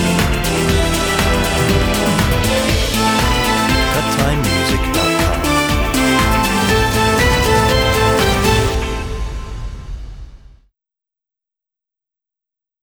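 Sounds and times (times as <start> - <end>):
orchestral music: 0.0 - 10.1.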